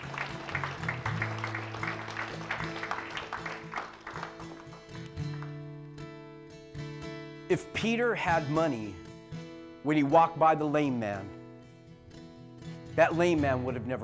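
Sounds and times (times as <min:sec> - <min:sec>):
audience applause: 0:00.0 - 0:05.5
speech: 0:07.5 - 0:09.0, 0:09.8 - 0:11.4, 0:13.0 - 0:14.0.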